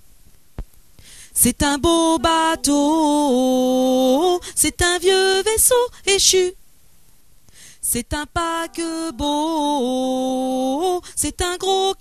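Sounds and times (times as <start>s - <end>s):
tenors singing: 1.4s - 5.8s, 7.9s - 11.9s.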